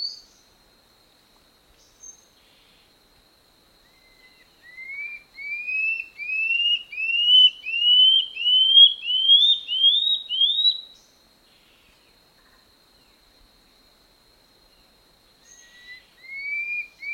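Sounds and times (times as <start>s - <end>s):
common scale-backed antbird song of upslurred whistles: 3.9s - 11.0s, 15.4s - 17.1s.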